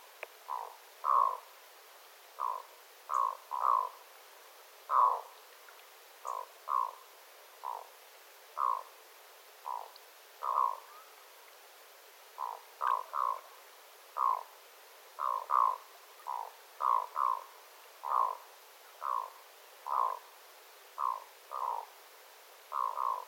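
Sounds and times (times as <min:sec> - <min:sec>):
black-throated loon croaking calls: 0:00.5 - 0:01.5, 0:02.4 - 0:04.0, 0:04.9 - 0:05.3, 0:06.2 - 0:07.0, 0:07.6 - 0:07.9, 0:08.6 - 0:08.9, 0:09.6 - 0:11.1, 0:12.4 - 0:13.5, 0:14.2 - 0:14.5, 0:15.2 - 0:18.4, 0:19.0 - 0:20.3, 0:21.0 - 0:21.9, 0:22.7 - 0:23.2.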